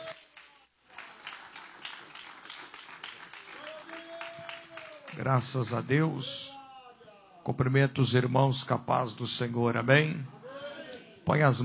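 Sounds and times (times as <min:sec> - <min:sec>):
audience clapping: 0:00.0 - 0:06.1
speech: 0:05.2 - 0:06.6, 0:07.4 - 0:10.4, 0:11.2 - 0:11.6.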